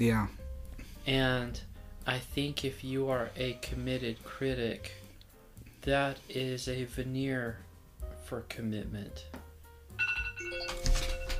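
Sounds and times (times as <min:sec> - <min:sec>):
speech: 0:00.0 - 0:00.4, 0:01.0 - 0:05.0, 0:05.8 - 0:07.6, 0:08.2 - 0:09.4
alarm ringing: 0:10.0 - 0:11.3.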